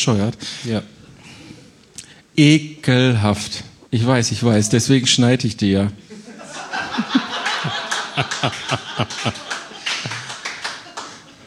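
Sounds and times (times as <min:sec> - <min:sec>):
speech: 0:00.0 - 0:01.0, 0:02.4 - 0:06.2, 0:07.0 - 0:09.6
laughter sound effect: 0:06.0 - 0:11.4
applause sound effect: 0:07.6 - 0:11.3.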